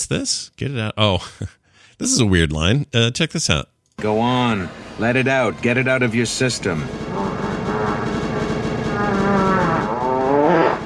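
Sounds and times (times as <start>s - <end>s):
speech: 0.1s - 7.4s
fart sound effect: 7.1s - 10.8s.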